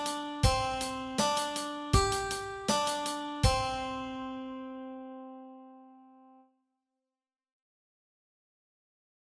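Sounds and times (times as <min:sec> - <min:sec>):
guitar exercise: 0:00.0 - 0:06.4.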